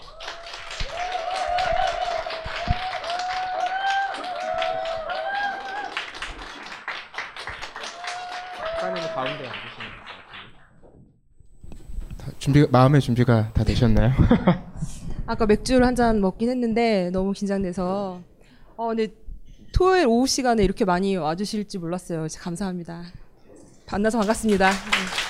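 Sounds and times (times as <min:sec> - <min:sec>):
audience applause: 0:00.0 - 0:10.6, 0:24.1 - 0:25.2
speech: 0:12.4 - 0:14.7, 0:15.3 - 0:19.2, 0:19.8 - 0:23.2, 0:23.9 - 0:25.2
laughter: 0:14.0 - 0:14.8.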